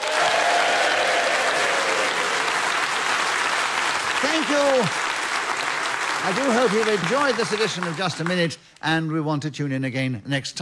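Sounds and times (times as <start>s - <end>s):
audience applause: 0.0s - 8.6s
speech: 4.2s - 5.0s, 6.2s - 10.6s.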